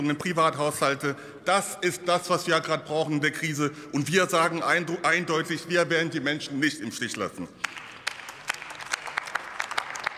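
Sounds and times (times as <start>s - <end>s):
speech: 0.0s - 7.8s
applause in a parliamentary chamber: 7.1s - 10.1s.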